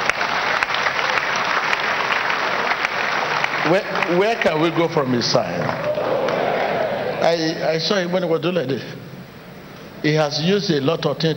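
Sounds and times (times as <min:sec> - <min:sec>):
crowd clapping: 0:00.0 - 0:07.5
speech: 0:03.6 - 0:05.9, 0:07.2 - 0:09.0, 0:10.0 - 0:11.3.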